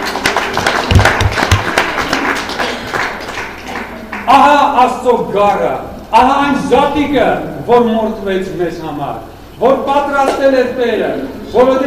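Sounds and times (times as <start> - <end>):
congregation clapping hands during an Armenian church service: 0.0 - 4.5
speech: 4.3 - 11.8.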